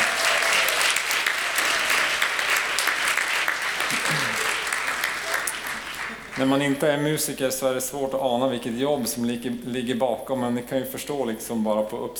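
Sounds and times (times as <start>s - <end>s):
audience applause for the choir: 0.0s - 6.7s
speech: 6.4s - 12.1s.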